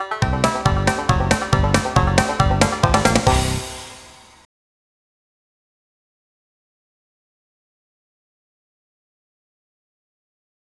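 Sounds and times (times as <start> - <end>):
music: 0.0 - 4.5.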